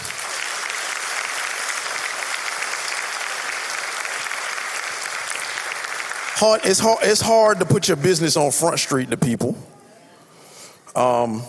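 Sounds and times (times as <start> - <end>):
crowd applause: 0.0 - 8.9
speech: 6.4 - 9.8, 11.0 - 11.4.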